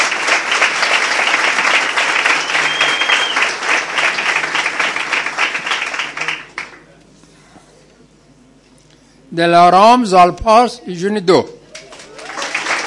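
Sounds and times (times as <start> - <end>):
audience applause at a ceremony: 0.0 - 6.9, 11.7 - 12.8
speech: 9.4 - 11.6.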